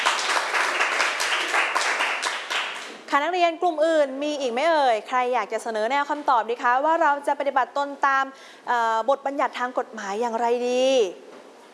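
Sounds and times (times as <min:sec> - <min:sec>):
students clapping for a classmate in class: 0:00.0 - 0:03.0
speech: 0:03.1 - 0:11.2.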